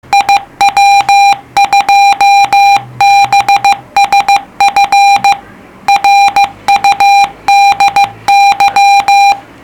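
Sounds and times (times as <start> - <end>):
CW Morse code beeps: 0.1 - 9.4.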